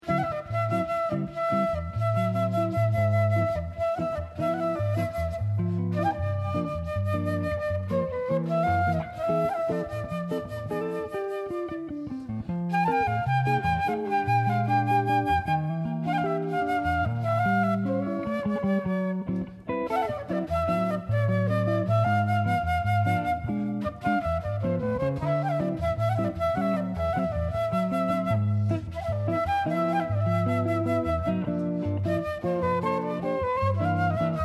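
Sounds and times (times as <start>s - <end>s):
flute: 0.0s - 34.4s.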